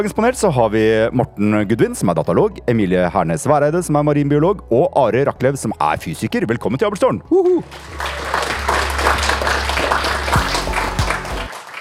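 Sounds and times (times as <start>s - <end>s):
speech: 0.0s - 8.5s
clapping and applause in a podcast jingle: 7.4s - 11.8s.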